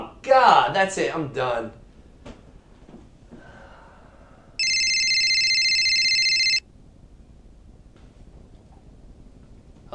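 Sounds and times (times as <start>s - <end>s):
speech: 0.3s - 1.8s
cell phone ringing: 4.6s - 6.6s.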